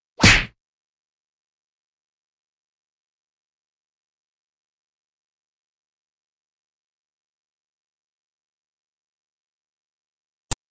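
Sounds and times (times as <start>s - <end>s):
fight sounds: 0.2s - 0.6s.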